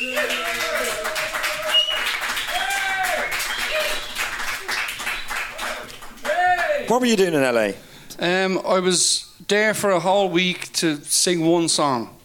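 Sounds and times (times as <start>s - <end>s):
scattered cheers and whoops: 0.0s - 5.2s, 6.3s - 6.9s
crowd applauding: 0.0s - 7.2s
speech: 6.9s - 12.2s.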